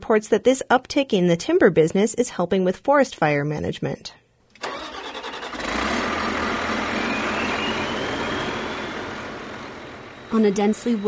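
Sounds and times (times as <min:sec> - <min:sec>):
speech: 0:00.1 - 0:04.2, 0:10.3 - 0:11.0
logging machine engine cranking and roaring: 0:04.6 - 0:11.0.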